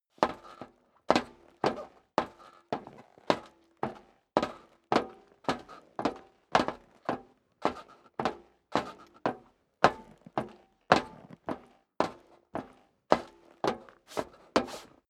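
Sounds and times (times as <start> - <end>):
boots stepping up dry metal stairs: 0.2 - 15.0.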